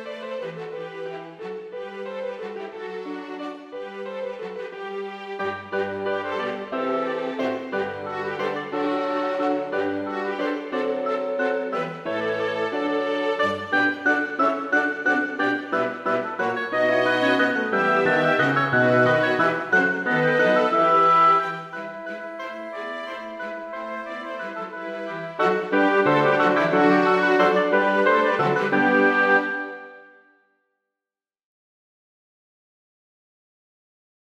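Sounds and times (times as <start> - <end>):
two oboes: 5.7 - 30.0.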